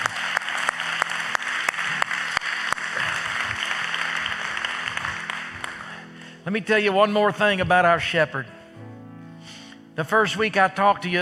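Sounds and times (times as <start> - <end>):
audience applause: 0.0 - 6.2
speech: 6.5 - 8.6, 10.0 - 11.2.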